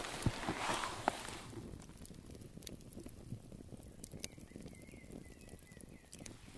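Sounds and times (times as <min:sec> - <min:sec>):
campfire crackling: 0:00.0 - 0:06.5.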